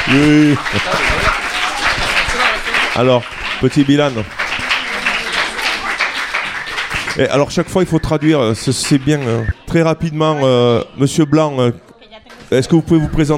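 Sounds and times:
laughter: 0.0 - 2.7
students applauding: 0.0 - 9.7
speech: 0.1 - 1.1, 3.0 - 4.4, 7.2 - 11.8, 12.5 - 13.3.

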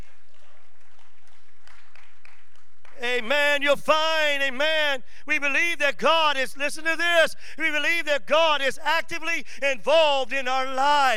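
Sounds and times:
crowd clapping hands: 0.0 - 3.1
speech: 3.0 - 11.1.

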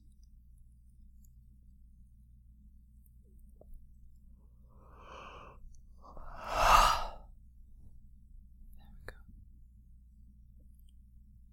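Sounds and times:
slow breathing during a guided breathing exercise: 4.8 - 7.2.

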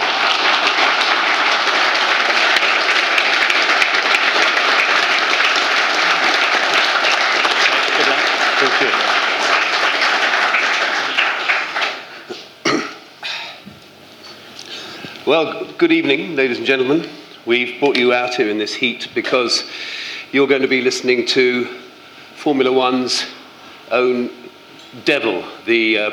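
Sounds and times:
crowd applause: 0.0 - 12.4
speech: 15.3 - 21.8, 22.4 - 26.1.

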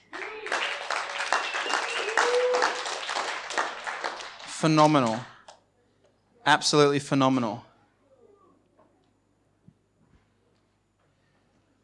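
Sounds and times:
audience applause: 0.0 - 5.3
speech: 4.6 - 5.3, 6.4 - 7.7.

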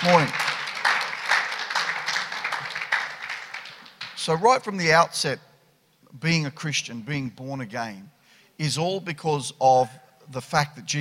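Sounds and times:
speech: 0.0 - 0.4, 4.2 - 5.5, 6.1 - 10.9
church congregation applauding to welcome visitors at a morning service: 0.0 - 4.5.

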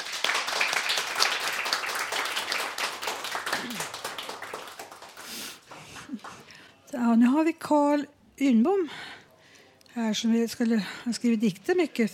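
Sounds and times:
audience applause: 0.0 - 6.5
speech: 7.0 - 9.1, 10.0 - 12.1.

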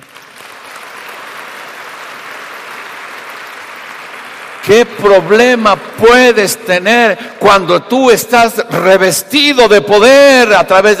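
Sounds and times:
applause: 0.0 - 7.5
speech: 4.6 - 10.9.

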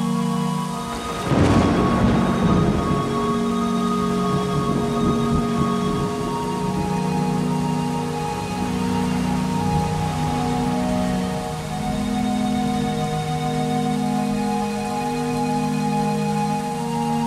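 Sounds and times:
late summer rain hissing: 0.0 - 17.2
thunder crack and rumble: 1.0 - 7.0.

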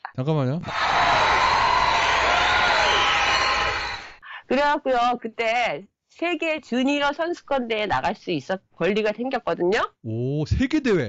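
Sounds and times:
speech: 0.2 - 1.2, 4.5 - 11.0
clapping: 0.9 - 4.2.

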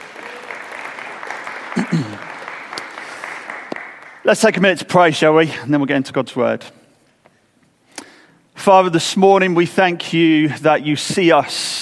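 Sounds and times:
audience applause: 0.0 - 4.3
speech: 1.8 - 2.2, 4.3 - 6.8, 8.7 - 11.8.

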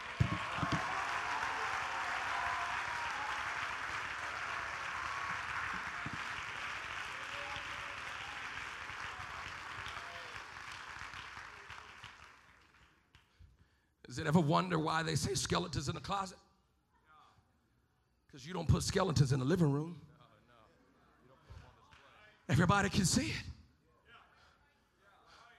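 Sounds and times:
audience clapping: 0.0 - 13.4
speech: 14.2 - 16.4, 18.4 - 20.1, 22.6 - 23.5.

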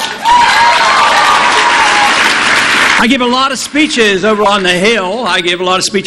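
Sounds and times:
audience applause welcoming a speaker: 0.0 - 4.5
speech: 3.0 - 6.0.

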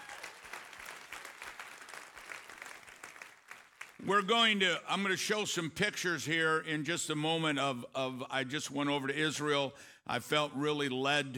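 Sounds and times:
audience applause: 0.0 - 4.0
speech: 4.0 - 11.3.

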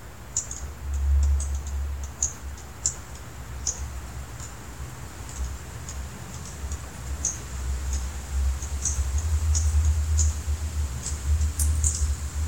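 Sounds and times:
juncos cheeping while foraging: 0.4 - 4.0, 5.3 - 12.4.

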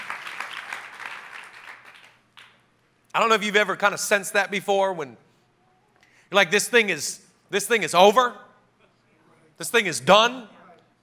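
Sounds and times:
audience clapping and cheering: 0.0 - 2.7
speech: 3.2 - 5.3, 6.3 - 8.5, 9.6 - 10.6.

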